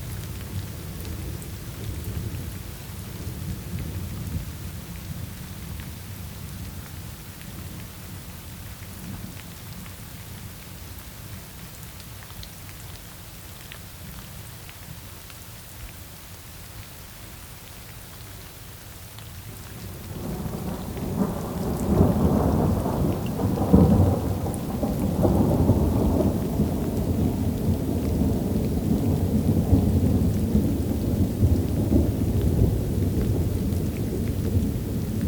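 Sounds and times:
steady rain downpour: 0:00.0 - 0:35.2
thunder: 0:19.8 - 0:35.2.

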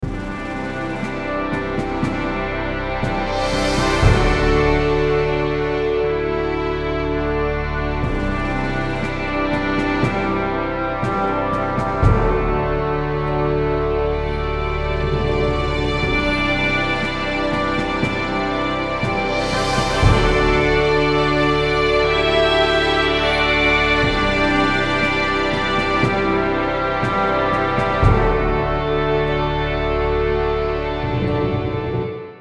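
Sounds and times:
background podcast music: 0:00.0 - 0:32.3.

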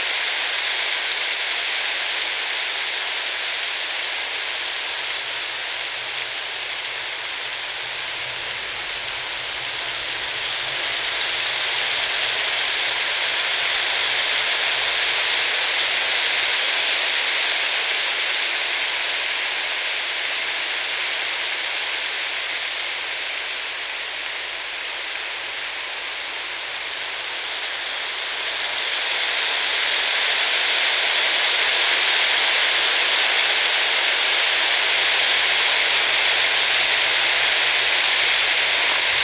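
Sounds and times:
steady rain falling in the forest: 0:00.0 - 0:39.2.

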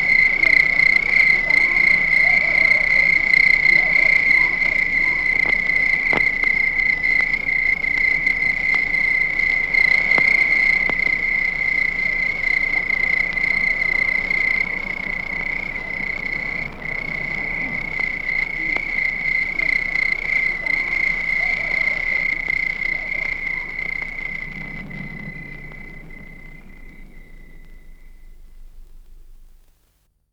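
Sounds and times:
crickets chirping at night: 0:00.0 - 0:30.1
distant dog barking: 0:00.3 - 0:06.8, 0:18.5 - 0:24.8.

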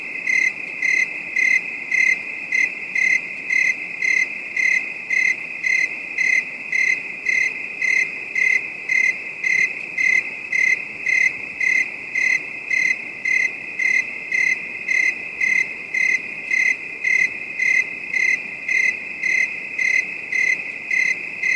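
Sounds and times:
crickets trilling at night: 0:00.0 - 0:21.5.

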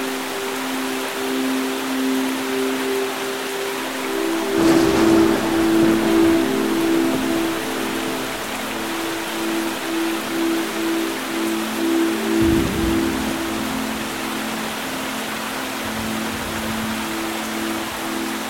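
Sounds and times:
rain: 0:00.0 - 0:18.4
thunder: 0:04.2 - 0:09.2.

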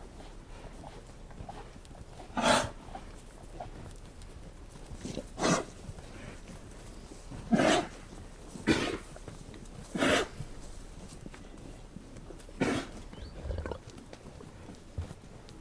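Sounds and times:
cows coughing: 0:02.4 - 0:02.7, 0:07.5 - 0:07.9, 0:08.6 - 0:09.1, 0:10.0 - 0:10.4, 0:12.6 - 0:13.8.

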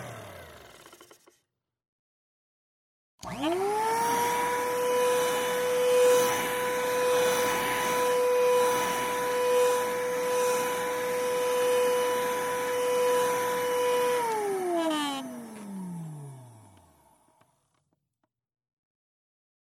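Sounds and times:
vacuum cleaner: 0:00.0 - 0:01.4, 0:03.2 - 0:17.4.

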